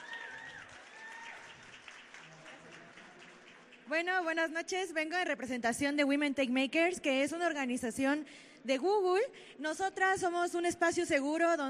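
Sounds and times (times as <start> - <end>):
audience applause: 0.0 - 3.9
speech: 3.9 - 11.6.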